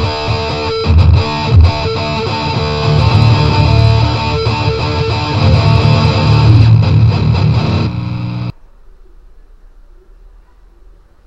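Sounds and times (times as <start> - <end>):
guitar: 0.0 - 8.6.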